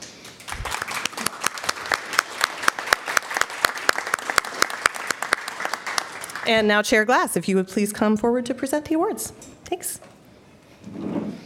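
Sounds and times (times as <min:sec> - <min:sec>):
audience applause: 0:00.0 - 0:06.6
speech: 0:06.5 - 0:10.1.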